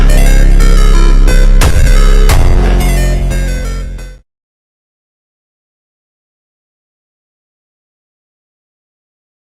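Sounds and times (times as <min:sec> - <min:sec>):
broken phonk music: 0:00.0 - 0:04.2.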